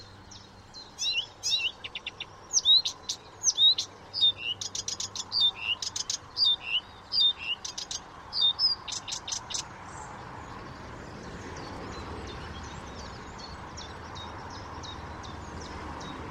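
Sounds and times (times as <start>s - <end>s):
Blyth's reed warbler song: 0.0s - 16.3s.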